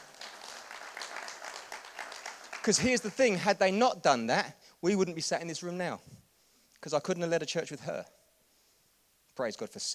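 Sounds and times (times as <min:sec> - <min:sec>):
crowd applause: 0:00.0 - 0:03.1
speech: 0:02.6 - 0:06.2, 0:06.8 - 0:08.2, 0:09.4 - 0:09.9.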